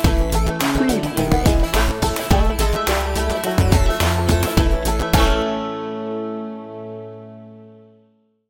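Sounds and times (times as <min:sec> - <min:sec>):
hip hop bluegrass music: 0:00.0 - 0:06.0.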